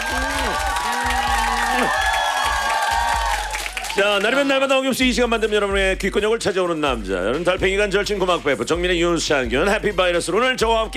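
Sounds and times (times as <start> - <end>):
standing ovation crowd applauding: 0.0 - 4.9
speech: 4.0 - 10.9.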